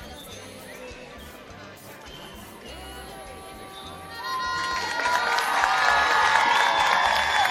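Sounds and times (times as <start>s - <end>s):
audience cheering and shouting: 4.1s - 7.4s
audience clapping: 4.6s - 7.4s.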